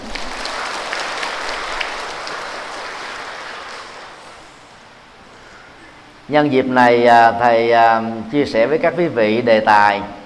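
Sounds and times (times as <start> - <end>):
audience applause: 0.0 - 4.6
speech: 6.3 - 10.2.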